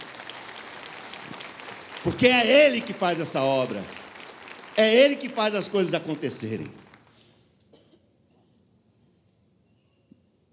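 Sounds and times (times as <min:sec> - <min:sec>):
audience applause: 0:00.0 - 0:07.3
speech: 0:02.0 - 0:04.0, 0:04.8 - 0:06.8.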